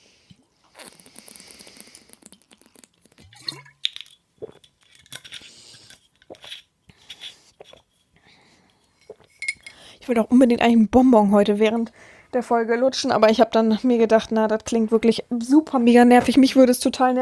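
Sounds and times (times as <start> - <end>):
person taking a sip of drink: 0.2 - 10.0
speech: 10.1 - 17.2.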